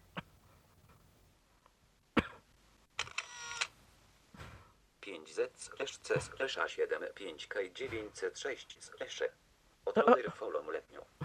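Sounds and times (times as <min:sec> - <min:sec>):
phone camera shutter photographing a book page: 0:03.0 - 0:03.7
speech: 0:05.1 - 0:11.2.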